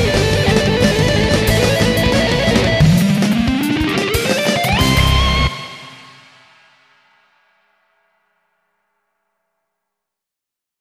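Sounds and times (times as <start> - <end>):
soundcheck: 0.0 - 6.7.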